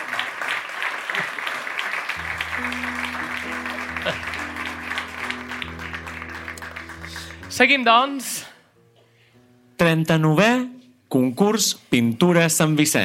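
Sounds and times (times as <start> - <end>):
crowd strong applause: 0.0 - 8.2
speech: 7.6 - 8.5, 9.8 - 13.0.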